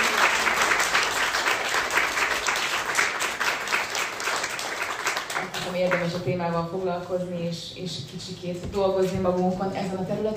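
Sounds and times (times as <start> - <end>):
audience applause: 0.0 - 5.8
speech: 5.8 - 10.3.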